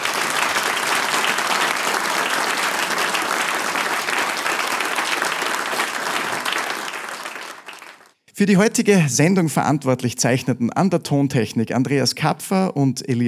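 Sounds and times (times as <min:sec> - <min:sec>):
audience applause: 0:00.0 - 0:08.2
speech: 0:08.4 - 0:13.2.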